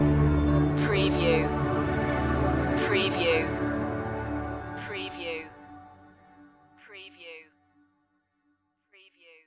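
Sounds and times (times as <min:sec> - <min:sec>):
rainforest music stinger: 0:00.0 - 0:05.9.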